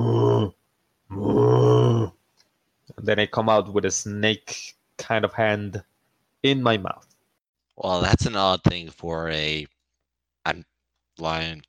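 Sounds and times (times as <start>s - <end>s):
voice imitating a bear growl: 0.0s - 2.2s
speech: 3.0s - 7.1s, 7.8s - 9.7s, 10.4s - 11.6s.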